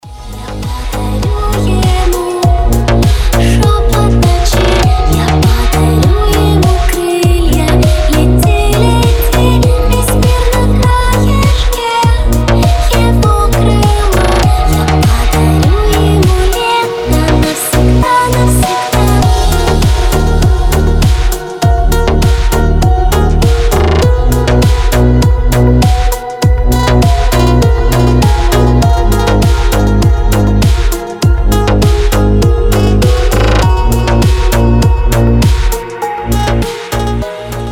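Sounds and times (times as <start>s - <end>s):
remix music: 0.0s - 37.7s.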